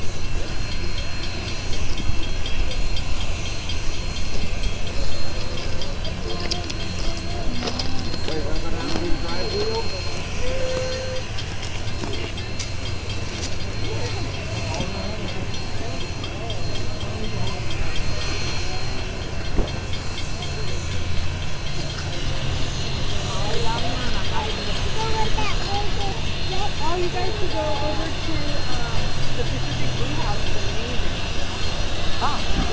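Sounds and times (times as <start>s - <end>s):
Union Pacific No. 844 steam locomotive approaching and leaving: 0.0s - 32.7s.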